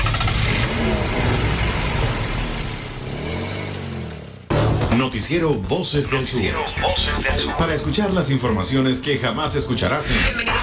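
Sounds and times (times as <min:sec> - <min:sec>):
engines starting and revving: 0:00.0 - 0:05.4
speech: 0:05.1 - 0:10.6.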